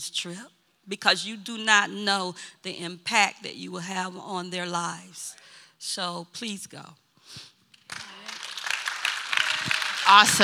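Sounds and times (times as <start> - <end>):
speech: 0.0 - 8.0, 10.1 - 10.4
people cheering in the hallway: 7.9 - 10.4.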